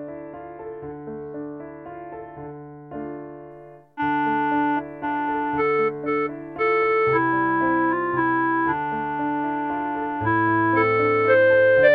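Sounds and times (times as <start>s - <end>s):
clarinet: 4.0s - 11.9s.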